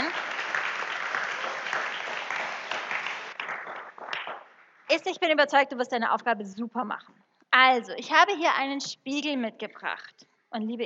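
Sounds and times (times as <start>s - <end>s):
audience clapping: 0.0s - 4.9s
speech: 4.9s - 10.8s.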